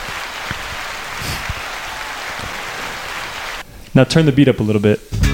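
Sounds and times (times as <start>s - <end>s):
round of applause: 0.0s - 3.6s
speech: 4.0s - 5.2s.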